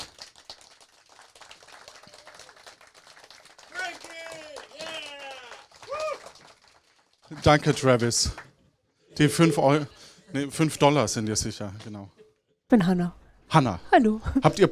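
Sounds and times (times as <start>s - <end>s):
audience clapping: 0.0s - 8.7s
audience whooping and cheering: 1.6s - 2.9s, 3.7s - 6.5s
speech: 7.3s - 8.5s, 9.2s - 14.6s.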